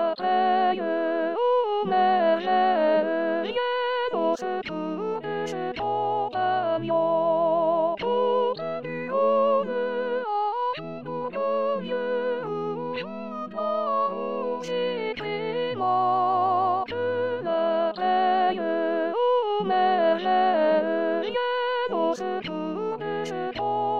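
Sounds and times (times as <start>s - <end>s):
soprano voice singing: 0.0s - 23.9s.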